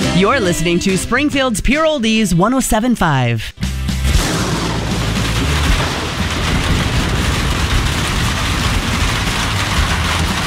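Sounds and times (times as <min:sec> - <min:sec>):
speech: 0:00.2 - 0:03.6
heavy rain: 0:04.1 - 0:10.4
thunder: 0:04.1 - 0:10.4.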